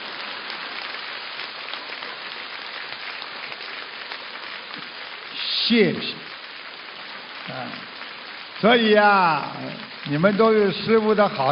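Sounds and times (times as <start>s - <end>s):
audience applause: 0.0s - 11.5s
speech: 5.7s - 6.3s, 8.6s - 11.5s.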